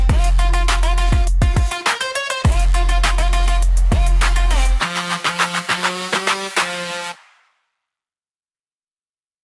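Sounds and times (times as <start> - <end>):
electronic hip hop beat: 0.0 - 7.5.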